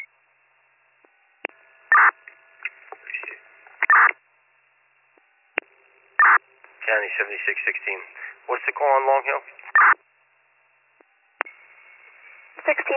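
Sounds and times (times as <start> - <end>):
phone call back dialing over a narrowband radio line: 3.8 - 4.2
speech: 7.1 - 10.0, 12.7 - 12.9.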